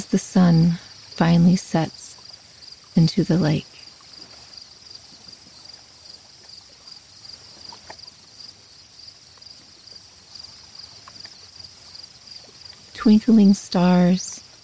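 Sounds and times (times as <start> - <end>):
crickets chirping in forest at dusk: 0.0 - 14.6
speech: 0.1 - 2.0, 3.0 - 3.7, 13.1 - 14.4.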